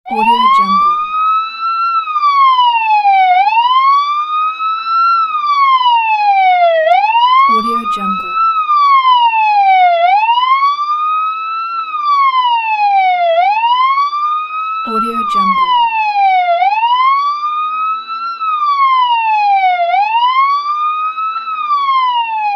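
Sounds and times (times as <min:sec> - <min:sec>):
ambulance siren: 0:00.1 - 0:22.5.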